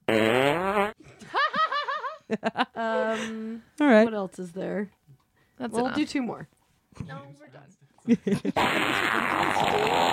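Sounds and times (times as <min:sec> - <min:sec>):
fart sound effect from a soundboard: 0:00.0 - 0:01.0, 0:08.5 - 0:10.1
speech: 0:02.3 - 0:05.0, 0:05.6 - 0:10.1.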